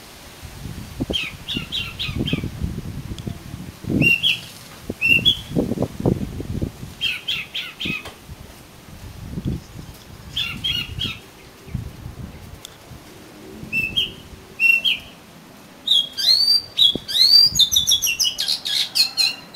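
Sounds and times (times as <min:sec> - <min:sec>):
Oriental magpie-robin song: 0:01.1 - 0:02.5, 0:04.0 - 0:05.6, 0:07.0 - 0:08.2, 0:09.5 - 0:12.5, 0:13.6 - 0:15.2, 0:15.8 - 0:19.5.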